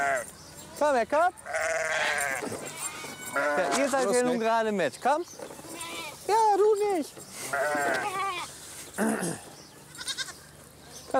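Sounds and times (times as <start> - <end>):
goats bleating: 0.0 - 0.3, 1.4 - 4.3, 5.6 - 6.2, 7.4 - 10.4
speech: 0.0 - 1.6, 3.3 - 5.5, 6.3 - 8.3, 9.0 - 9.5.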